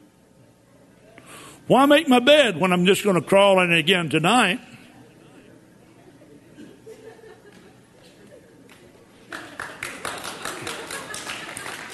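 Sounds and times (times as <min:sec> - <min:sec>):
speech: 0:01.7 - 0:04.7
laughter: 0:06.0 - 0:11.9
audience clapping: 0:08.6 - 0:11.9.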